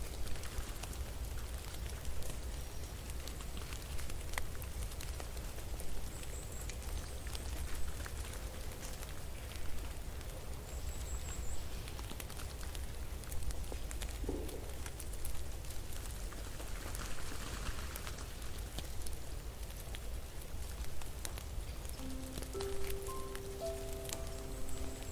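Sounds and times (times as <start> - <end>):
snow falling and melting: 0.0 - 25.1
soft tones: 22.0 - 25.1.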